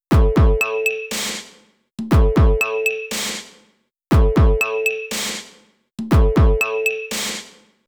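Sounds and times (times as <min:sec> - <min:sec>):
drum loop: 0:00.1 - 0:07.6.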